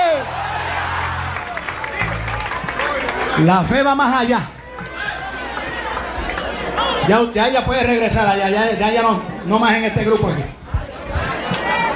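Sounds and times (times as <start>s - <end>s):
audience applauding: 0.0s - 7.4s
speech: 3.4s - 4.6s, 7.1s - 10.6s.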